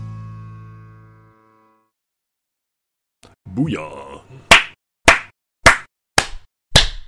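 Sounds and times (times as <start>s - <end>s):
speech: 3.6s - 4.1s
hands clapping: 4.5s - 7.0s.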